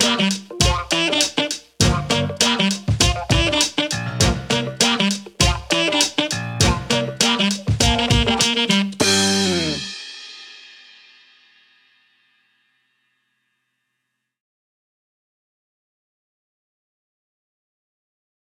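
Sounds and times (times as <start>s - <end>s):
funky brass show music: 0.0s - 10.2s.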